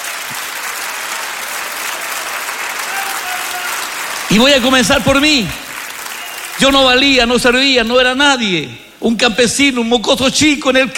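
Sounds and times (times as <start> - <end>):
audience applause: 0.0 - 7.7
speech: 4.3 - 5.7, 6.6 - 10.9.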